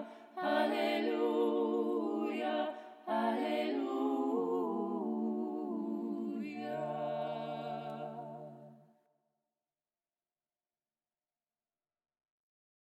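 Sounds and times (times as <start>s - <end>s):
Russian Orthodox choir singing a chant: 0.0s - 8.9s.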